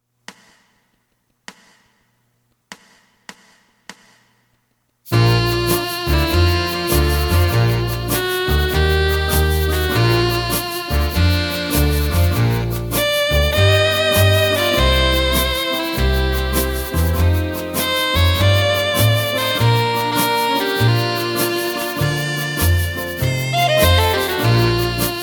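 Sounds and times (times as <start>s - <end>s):
second alto saxophone part: 5.1s - 25.2s.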